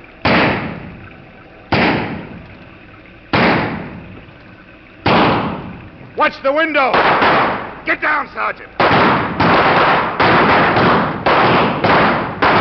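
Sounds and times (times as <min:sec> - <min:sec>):
gunshots in a shootout: 0:01.7 - 0:02.2, 0:03.3 - 0:03.8, 0:05.1 - 0:05.6, 0:06.9 - 0:07.7, 0:08.8 - 0:12.6
speech: 0:06.2 - 0:09.2.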